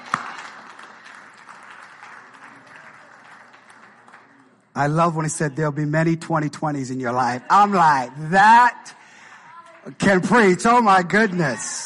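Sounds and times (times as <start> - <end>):
audience clapping hands: 0.0 - 5.0
speech: 4.8 - 9.0, 9.8 - 11.8.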